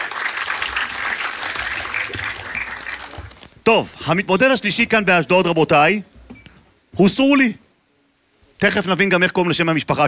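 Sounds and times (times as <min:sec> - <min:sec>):
audience applause: 0:00.0 - 0:03.5
speech: 0:03.7 - 0:06.1, 0:07.0 - 0:07.6, 0:08.6 - 0:10.0.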